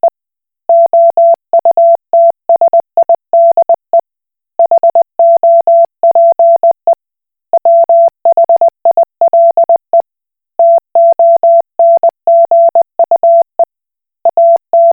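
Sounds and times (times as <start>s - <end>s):
Koch Morse code beeps: 0.7s - 3.8s, 4.6s - 6.8s, 7.6s - 9.8s, 10.6s - 13.7s, 14.3s - 14.9s.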